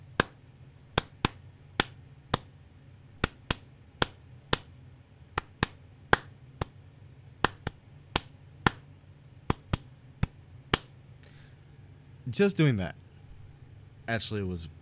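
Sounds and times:
faint low hum: 0.0s - 14.8s
rhythmic hand clapping toward walls: 0.2s - 0.4s, 1.0s - 2.5s, 3.2s - 4.7s, 5.4s - 6.8s, 7.4s - 8.9s, 9.5s - 10.9s
speech: 12.3s - 13.0s, 14.1s - 14.8s.

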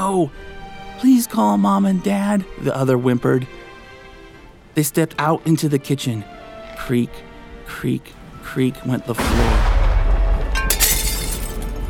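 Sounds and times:
speech: 0.0s - 3.6s, 4.8s - 9.8s
window breaking as a tree branch pierces it: 10.5s - 11.8s.

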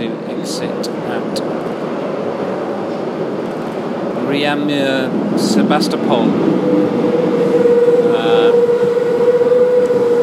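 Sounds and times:
Paris metro train rumbling: 0.0s - 10.2s
high whine: 2.8s - 10.2s
speech: 4.4s - 8.8s.

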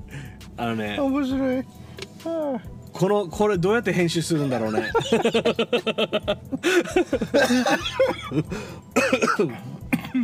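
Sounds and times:
speech: 0.6s - 9.7s
laughter: 4.3s - 8.5s
cough: 7.4s - 10.2s.

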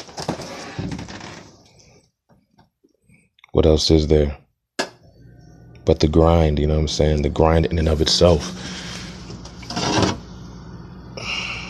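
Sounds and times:
rummaging through a fridge: 0.0s - 1.6s, 8.4s - 10.2s
speech: 3.6s - 4.4s, 5.8s - 8.8s.

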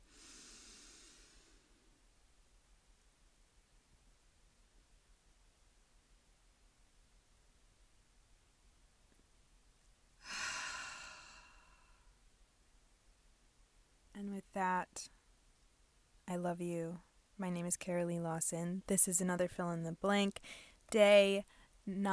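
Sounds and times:
strong airy exhale: 0.0s - 1.7s, 10.2s - 12.1s
deep breath in: 0.0s - 1.8s, 10.2s - 12.1s, 20.4s - 20.8s
speech: 14.2s - 15.2s, 16.3s - 22.1s.

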